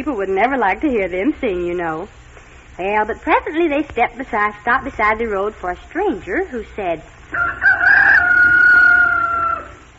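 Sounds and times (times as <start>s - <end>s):
speech: 0.0s - 2.2s, 2.8s - 7.8s
rooster crowing: 7.3s - 9.9s.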